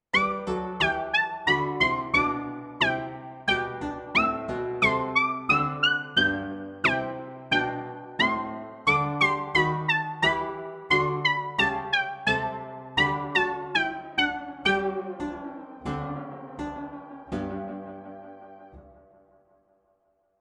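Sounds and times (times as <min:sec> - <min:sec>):
contrapuntal piece played on Pianoteq: 0:00.2 - 0:18.9.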